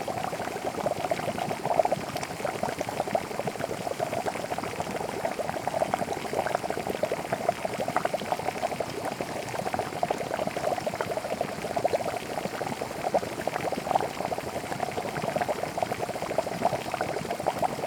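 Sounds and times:
water bubbling and boiling: 0:00.0 - 0:17.8.

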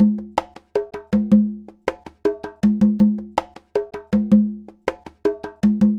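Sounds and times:
conga Latin percussion: 0:00.0 - 0:05.9.

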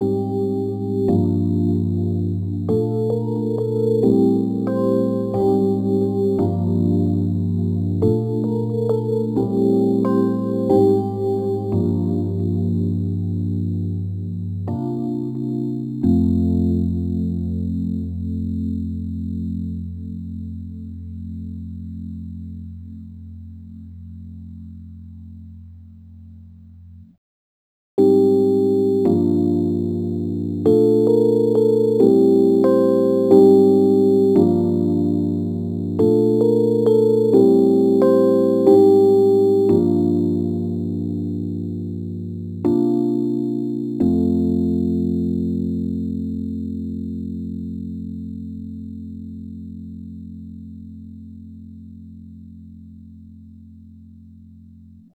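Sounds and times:
Rhodes electric piano attacks: 0:00.0 - 0:20.3, 0:28.0 - 0:48.3.

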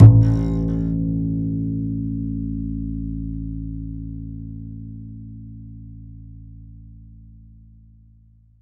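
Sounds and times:
double bass playing A: 0:00.0 - 0:06.2.

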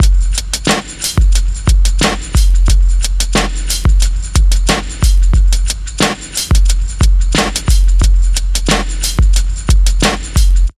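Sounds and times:
underground hip hop beat: 0:00.0 - 0:10.7.

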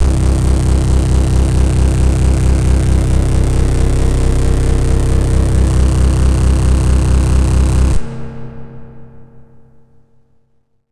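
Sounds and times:
Venus Multiband synthesizer bass: 0:00.0 - 0:08.3.

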